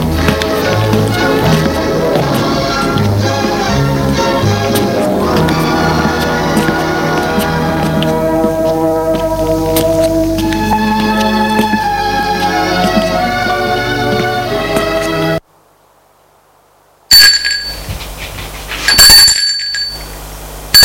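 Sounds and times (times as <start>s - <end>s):
steady layered tones: 0.0s - 15.4s
doorbell ringing: 17.1s - 17.9s, 18.9s - 20.2s.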